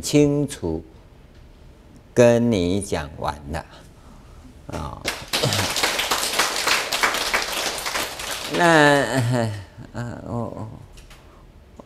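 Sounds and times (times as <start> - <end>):
speech: 0.0 - 0.9, 2.2 - 3.8, 4.7 - 5.6, 8.5 - 10.9
audience clapping: 5.0 - 9.1.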